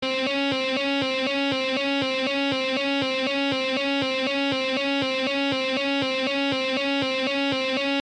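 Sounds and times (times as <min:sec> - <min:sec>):
guitar loop: 0:00.0 - 0:07.9.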